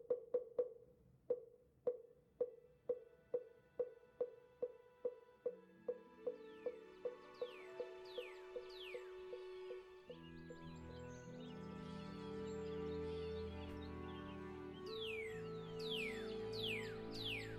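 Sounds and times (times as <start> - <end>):
soft rhythmic taps: 0.0 - 10.7
birds chirping and twittering moving from branch to branch: 3.8 - 17.5
sustained low tonal drone: 6.3 - 17.5.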